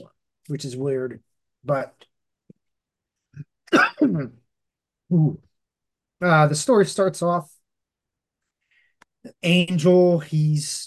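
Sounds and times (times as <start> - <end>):
speech: 0.5 - 2.1, 3.4 - 4.4, 5.1 - 5.5, 6.2 - 7.6, 9.2 - 10.8
person coughing after choking on own saliva: 3.4 - 4.4.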